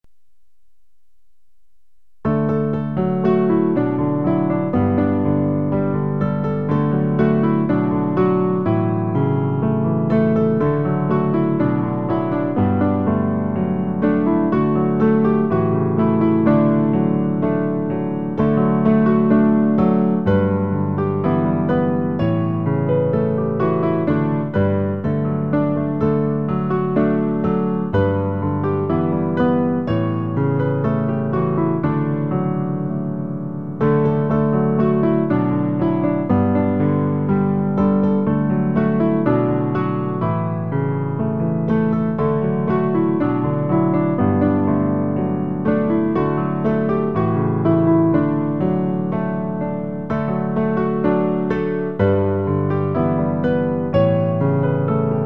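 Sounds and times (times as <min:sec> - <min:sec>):
piano: 0:00.0 - 0:55.2.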